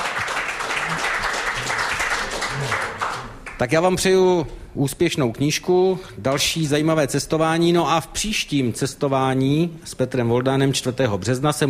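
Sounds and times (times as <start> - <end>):
audience clapping: 0.0 - 3.7
low murmurs: 0.6 - 3.4
speech: 3.6 - 11.6.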